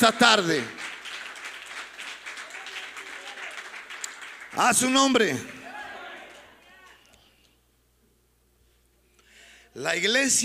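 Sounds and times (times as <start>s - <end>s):
speech: 0.0s - 0.8s, 4.6s - 5.6s, 9.8s - 10.4s
audience applauding: 0.0s - 7.0s.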